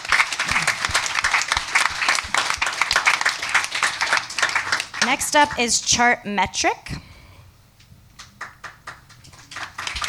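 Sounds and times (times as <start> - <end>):
audience applause: 0.0 - 5.4, 8.4 - 10.0
speech: 5.1 - 7.0.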